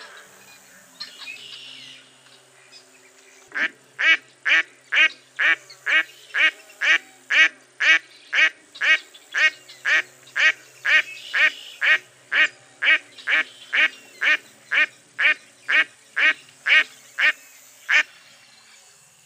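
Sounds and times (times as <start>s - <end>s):
duck quacking: 3.5s - 18.1s.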